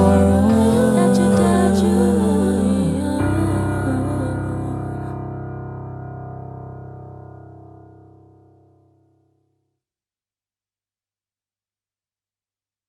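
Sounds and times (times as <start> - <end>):
acoustic music: 0.0 - 6.7.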